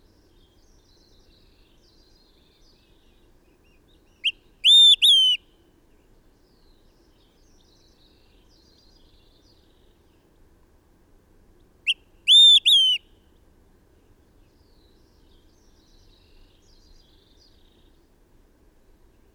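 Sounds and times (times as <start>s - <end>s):
bird singing: 0.0s - 10.3s, 11.8s - 13.0s, 14.4s - 18.0s.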